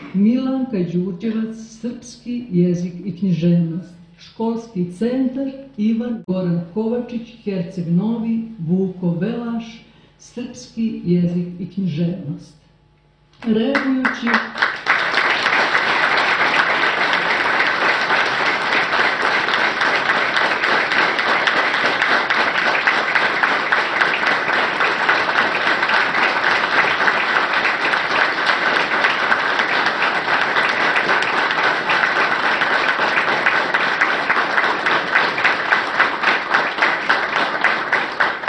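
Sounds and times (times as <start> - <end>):
speech: 0.2 - 12.6, 13.4 - 14.7
audience applause for teachers at a school ceremony in Montenegro: 13.8 - 38.4.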